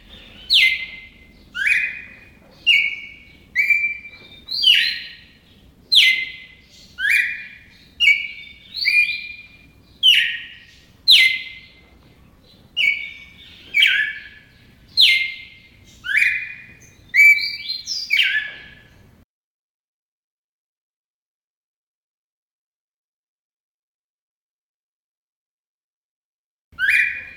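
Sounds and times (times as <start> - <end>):
red-crested cardinal chirping: 0.0 - 19.2, 26.8 - 27.3.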